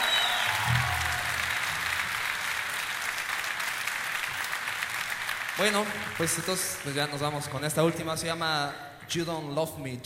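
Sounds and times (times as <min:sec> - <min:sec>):
audience applause: 0:00.0 - 0:07.8
speech: 0:05.6 - 0:10.0.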